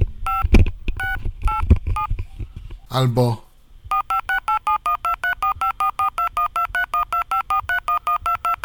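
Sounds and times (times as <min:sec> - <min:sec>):
DTMF telephone dialing tones: 0:00.3 - 0:02.1, 0:03.9 - 0:08.6
speech: 0:02.9 - 0:03.4.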